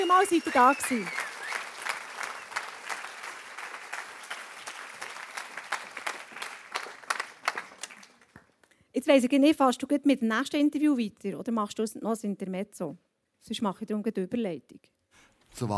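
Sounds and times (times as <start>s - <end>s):
audience applause: 0.0s - 8.6s
speech: 0.1s - 1.2s, 9.0s - 14.9s, 15.5s - 15.7s.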